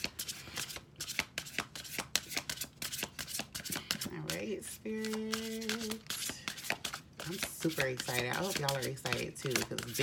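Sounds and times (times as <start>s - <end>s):
tarot cards being shuffled: 0.0s - 10.0s
speech: 4.6s - 6.1s, 7.3s - 10.0s.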